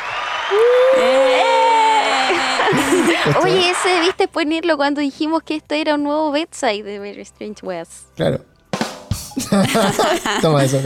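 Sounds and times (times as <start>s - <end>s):
whoops: 0.0s - 3.0s
loud drawn-out cheer: 0.0s - 4.1s
canned applause sound effect: 0.0s - 4.2s
speech: 0.5s - 0.8s, 2.7s - 8.5s, 9.4s - 10.8s
laughter: 1.5s - 4.1s, 9.4s - 10.8s.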